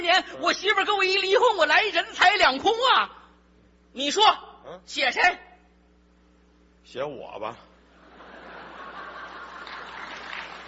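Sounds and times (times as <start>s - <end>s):
speech: 0.1s - 3.2s, 3.9s - 5.5s, 6.8s - 7.7s
laughter: 7.9s - 10.6s
audience applause: 8.7s - 10.6s.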